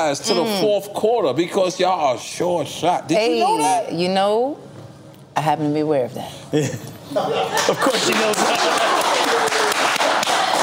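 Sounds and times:
speech: 0:00.0 - 0:04.7, 0:05.4 - 0:09.1
laughter: 0:06.6 - 0:10.6
audience applause: 0:07.6 - 0:10.6.

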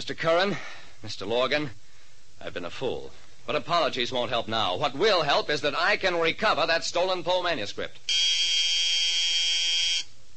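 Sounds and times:
speech: 0:00.0 - 0:01.8, 0:02.4 - 0:08.4
school class buzzer sounding: 0:08.1 - 0:10.1.

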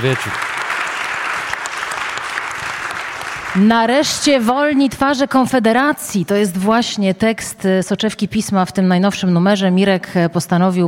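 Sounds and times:
speech: 0:00.0 - 0:00.5, 0:03.6 - 0:10.8
audience applause for arriving speaker: 0:00.0 - 0:04.5.

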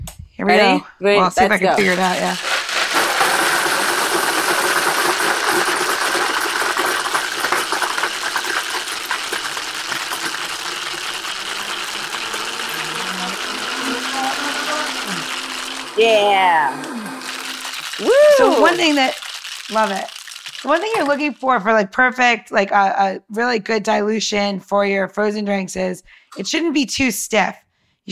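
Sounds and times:
speech: 0:00.4 - 0:02.5, 0:16.0 - 0:16.9, 0:18.0 - 0:28.1
blender motor whirring and grinding: 0:01.8 - 0:21.4.

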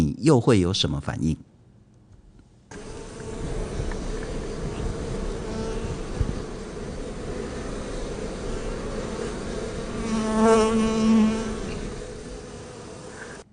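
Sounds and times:
speech: 0:00.2 - 0:01.5
honeybees buzzing in flight: 0:02.7 - 0:13.5.

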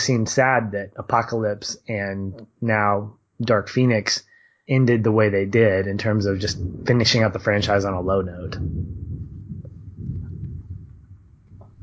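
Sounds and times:
speech: 0:00.0 - 0:09.0
thunderstorm: 0:05.5 - 0:11.8.

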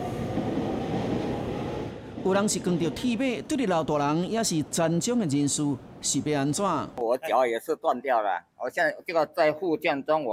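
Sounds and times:
train rumbling at a railway station: 0:00.0 - 0:07.0
speech: 0:02.2 - 0:10.3.

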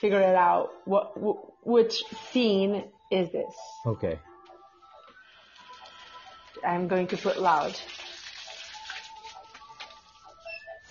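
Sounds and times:
speech: 0:00.0 - 0:04.3, 0:06.6 - 0:08.1
shower water running: 0:07.0 - 0:10.9.

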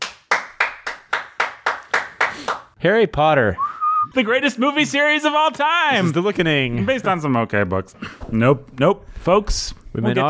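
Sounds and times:
live audience clapping: 0:00.0 - 0:02.8
speech: 0:02.8 - 0:10.2.

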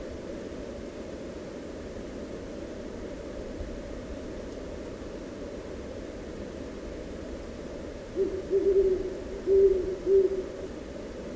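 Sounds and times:
owl hooting: 0:08.2 - 0:10.7.

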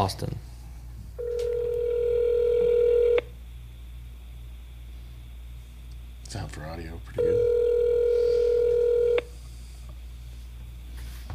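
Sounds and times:
speech: 0:00.0 - 0:00.4, 0:06.5 - 0:07.6
telephone tone as a call is dialed: 0:01.2 - 0:03.3, 0:07.2 - 0:09.2.

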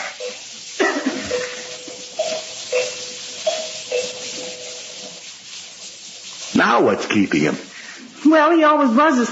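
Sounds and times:
bell being rung: 0:01.2 - 0:05.2
speech: 0:06.6 - 0:07.7, 0:08.3 - 0:09.3.

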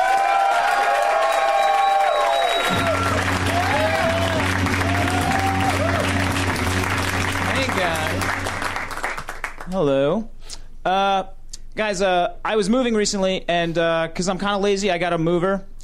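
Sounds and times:
audience applause: 0:00.0 - 0:09.7
speech: 0:09.8 - 0:15.8.

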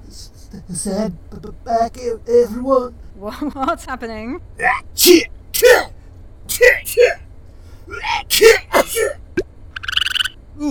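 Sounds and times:
speech: 0:00.5 - 0:07.2, 0:07.9 - 0:09.2
sneeze: 0:05.6 - 0:05.9, 0:08.3 - 0:09.2.

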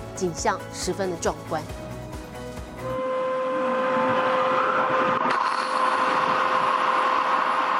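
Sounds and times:
speech: 0:00.2 - 0:01.9
loud alarm during village fire drill: 0:02.9 - 0:07.7.

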